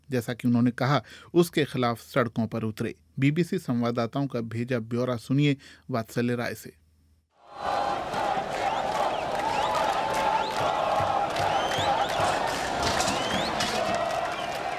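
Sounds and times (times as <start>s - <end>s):
speech: 0.1s - 6.8s
protest crowd chanting slogans in the streets of Beirut: 7.4s - 14.7s.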